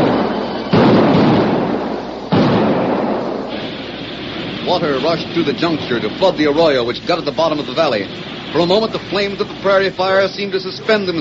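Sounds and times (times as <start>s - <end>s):
blasting powder explosions: 0.0s - 6.2s
speech: 4.7s - 11.2s.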